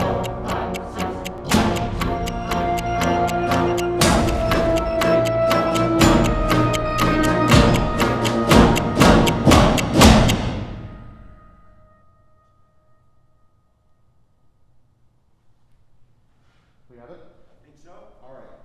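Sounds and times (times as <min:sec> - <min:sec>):
musicians playing: 0:00.0 - 0:10.5
pulse: 0:00.0 - 0:11.7.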